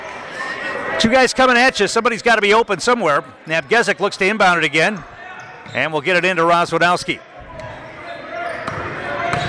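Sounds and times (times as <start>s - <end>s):
crowd noise at a basketball game: 0.0s - 9.4s
speech: 1.0s - 7.3s
basketball bouncing from a behind-the-back dribble: 8.6s - 9.4s.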